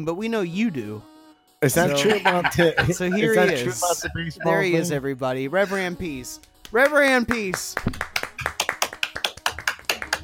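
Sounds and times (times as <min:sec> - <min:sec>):
speech: 0:00.0 - 0:08.1
laughter: 0:01.7 - 0:05.0
hand claps into microphones: 0:06.4 - 0:10.2.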